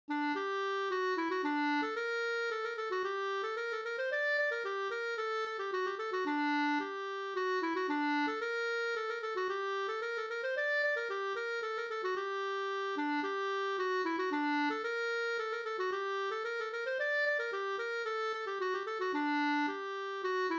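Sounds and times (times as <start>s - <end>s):
polska folk dance tune: 0.1s - 20.5s.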